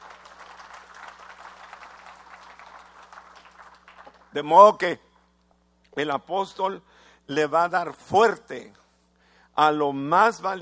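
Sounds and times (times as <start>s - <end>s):
audience applause: 0.0s - 4.3s
low constant hum: 0.0s - 10.6s
speech: 4.4s - 5.1s, 6.0s - 8.8s, 9.6s - 10.6s.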